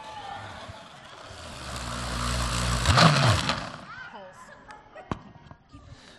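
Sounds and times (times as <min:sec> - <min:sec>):
blender motor chopping up money: 0:01.2 - 0:03.9.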